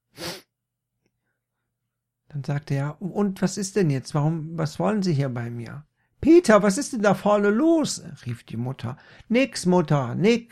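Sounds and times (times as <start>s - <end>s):
person sniffing: 0.0s - 0.5s
speech: 2.3s - 10.4s.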